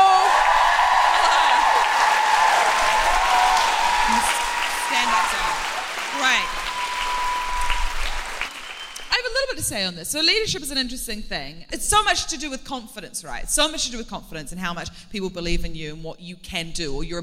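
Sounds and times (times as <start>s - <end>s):
audience clapping: 0.0s - 9.3s
speech: 9.7s - 17.2s.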